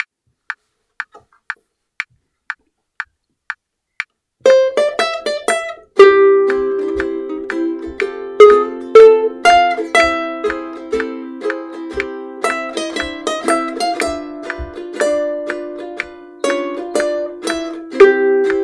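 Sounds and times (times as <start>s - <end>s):
ukulele melody: 4.4s - 18.6s.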